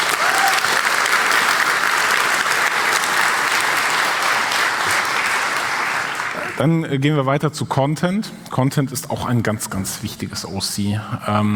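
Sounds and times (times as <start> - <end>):
audience applause: 0.0 - 6.6
speech: 6.6 - 11.5.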